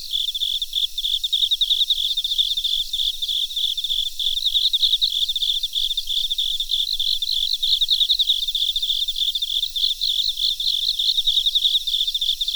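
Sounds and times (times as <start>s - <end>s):
cricket chirping: 0.0s - 12.5s.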